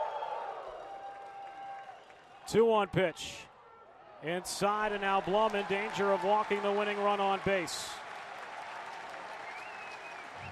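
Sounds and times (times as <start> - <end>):
baseball crowd applauding and cheering: 0.0 - 2.4, 4.9 - 10.4
speech: 2.5 - 3.5, 4.2 - 8.0.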